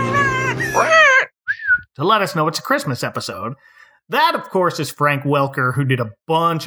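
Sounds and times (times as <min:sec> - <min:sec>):
person imitating a parrot warbling a Christmas tune: 0:00.1 - 0:01.8
speech: 0:02.0 - 0:06.6.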